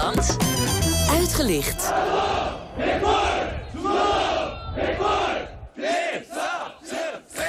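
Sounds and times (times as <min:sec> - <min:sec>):
speech: 0:00.2 - 0:00.5, 0:01.4 - 0:03.2
South Korean soldiers shouting in unison during training: 0:01.9 - 0:07.4.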